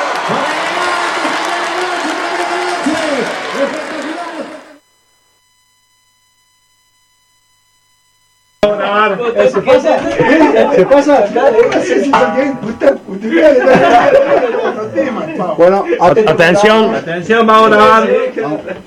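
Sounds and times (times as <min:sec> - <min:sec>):
crowd applauding and cheering for a cuarteto band: 0:00.0 - 0:04.8
speech: 0:09.3 - 0:18.8
laughter: 0:09.5 - 0:17.1, 0:18.0 - 0:18.8.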